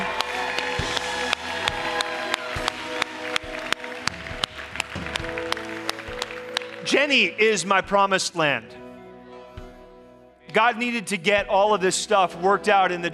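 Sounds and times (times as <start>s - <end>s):
audience applause: 0.0s - 7.4s
speech: 6.9s - 8.8s, 10.6s - 13.1s.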